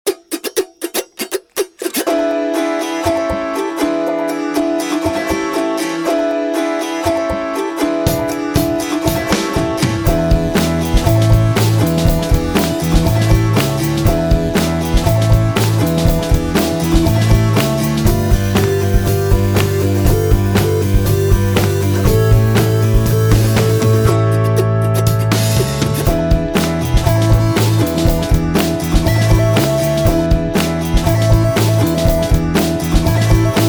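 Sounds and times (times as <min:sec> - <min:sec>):
autoharp playing an anthem: 0:00.1 - 0:33.6.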